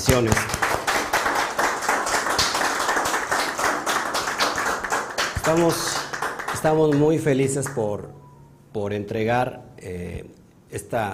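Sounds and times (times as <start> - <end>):
speech: 0.1 - 0.6, 5.5 - 6.0, 6.6 - 11.1
audience applause: 0.1 - 7.8.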